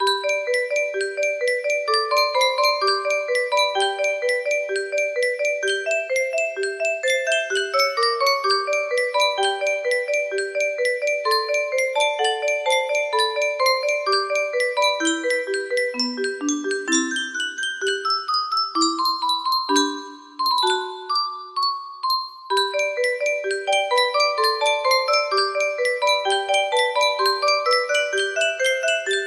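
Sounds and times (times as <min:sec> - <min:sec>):
piano sonata in C major music box melody: 0:00.0 - 0:29.2.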